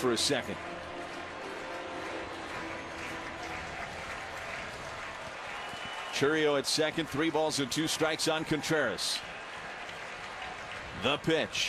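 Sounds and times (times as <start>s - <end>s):
speech: 0.0s - 0.8s, 6.2s - 9.3s, 11.0s - 11.6s
baseball stadium crowd noise at Wrigley: 0.0s - 11.6s.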